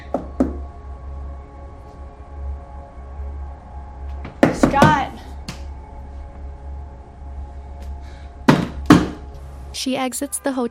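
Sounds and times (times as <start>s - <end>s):
steady low hum: 0.0s - 9.9s
knocking on a hotel room door: 0.1s - 0.6s, 4.3s - 5.1s, 8.5s - 9.2s
speech: 9.8s - 10.7s.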